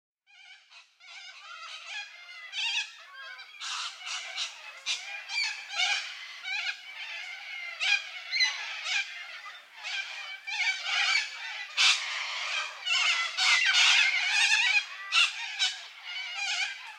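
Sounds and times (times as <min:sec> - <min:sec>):
Little corella flock harsh screeching: 0:00.3 - 0:16.9.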